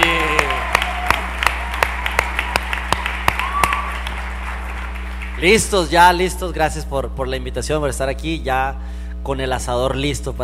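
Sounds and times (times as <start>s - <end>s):
audience applause: 0.0s - 6.2s
speech: 5.4s - 10.4s.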